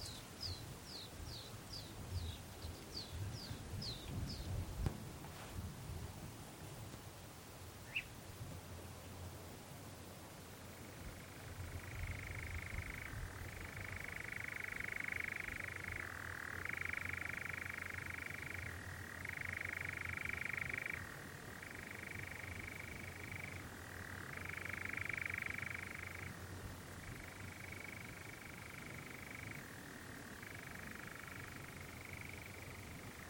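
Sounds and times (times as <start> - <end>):
low background noise: 0.0 - 33.2
European Nightjar churring: 11.2 - 26.4, 27.4 - 33.2.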